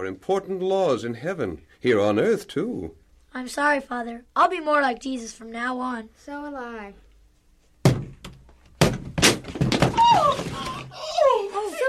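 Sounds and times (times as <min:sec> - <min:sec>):
speech: 0:00.0 - 0:07.0
door being battered and broken down: 0:07.8 - 0:10.9.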